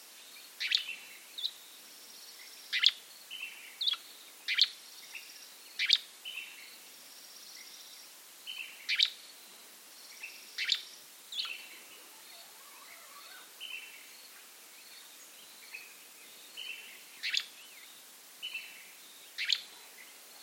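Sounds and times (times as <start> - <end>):
Gray flycatcher Empidonax wrightii calling with crisp clipped notes: 0.2 - 20.4.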